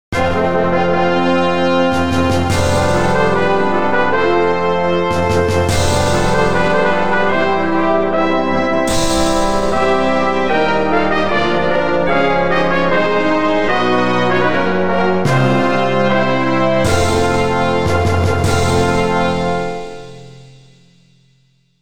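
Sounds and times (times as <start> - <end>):
fanfare: 0.1 - 20.8.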